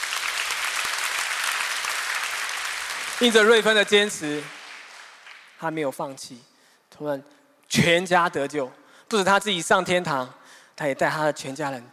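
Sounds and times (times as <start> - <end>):
audience clapping: 0.0 - 5.8
speech: 3.2 - 4.6, 5.6 - 11.9.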